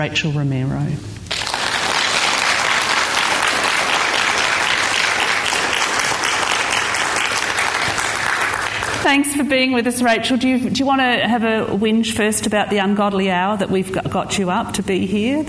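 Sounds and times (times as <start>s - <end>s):
speech: 0.0s - 1.2s, 9.0s - 15.4s
audience applause welcoming an interdisciplinary artist: 1.3s - 9.1s.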